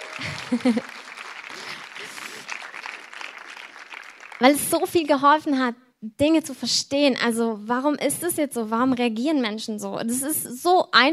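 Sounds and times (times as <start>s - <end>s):
laughter: 0.0s - 2.6s
applause: 0.0s - 5.1s
speech: 0.2s - 1.0s, 4.4s - 11.1s.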